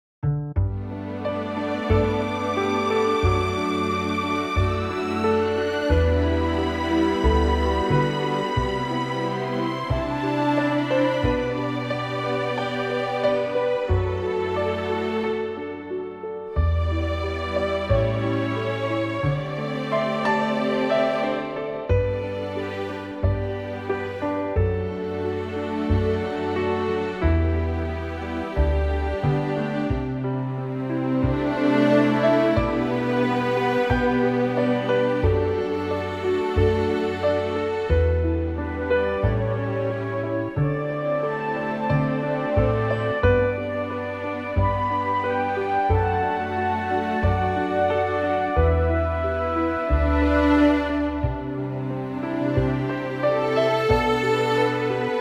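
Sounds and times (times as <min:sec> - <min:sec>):
orchestral backing track in G for male vocals: 0:00.2 - 0:55.1.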